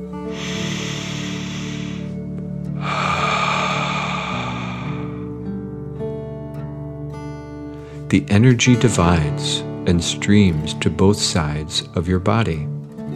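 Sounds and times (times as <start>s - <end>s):
deep dragon breath in and out: 0.1s - 5.7s
speech: 8.1s - 12.8s.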